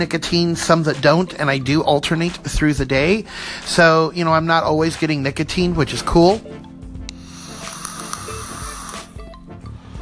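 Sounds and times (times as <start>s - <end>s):
speech: 0.0s - 6.6s
vape device popping and hissing: 7.0s - 9.3s.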